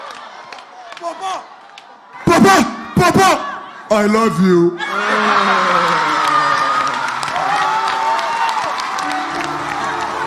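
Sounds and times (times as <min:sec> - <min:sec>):
crowd clapping and cheering: 0:00.0 - 0:02.6, 0:04.9 - 0:10.2
speech: 0:01.0 - 0:02.8, 0:03.9 - 0:05.0.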